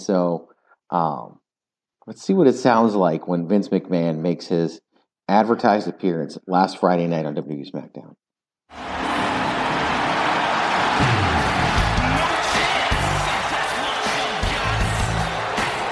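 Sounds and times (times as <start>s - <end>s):
speech: 0.0s - 1.4s, 2.1s - 9.0s
large crowd booing: 8.7s - 15.9s.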